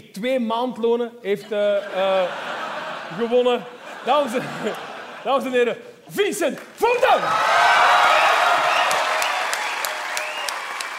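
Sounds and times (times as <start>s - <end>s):
speech: 0.2s - 2.5s, 3.1s - 7.7s
laughter: 1.4s - 5.8s
audience applause: 6.6s - 10.9s.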